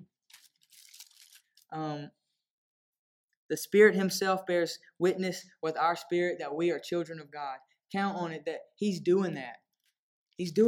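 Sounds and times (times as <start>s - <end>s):
Bible pages flipped quickly: 0.2s - 1.7s
speech: 1.7s - 2.2s, 3.5s - 9.6s, 10.4s - 10.6s.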